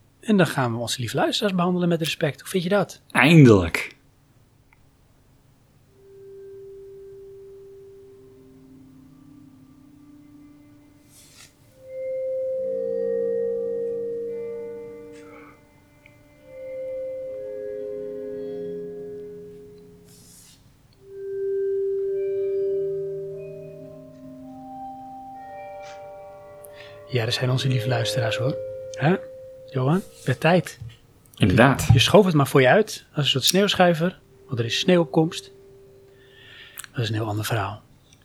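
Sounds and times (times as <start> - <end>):
speech: 0.2 - 4.0, 27.2 - 35.6, 37.0 - 37.8
short instrumental jingle of bell-like synth tones: 6.0 - 20.4, 21.0 - 32.8, 33.4 - 36.8.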